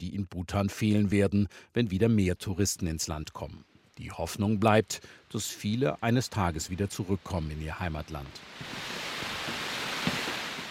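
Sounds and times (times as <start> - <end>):
speech: 0.0 - 9.3
waterfall below a famous monastery in Bhutan: 8.0 - 10.6.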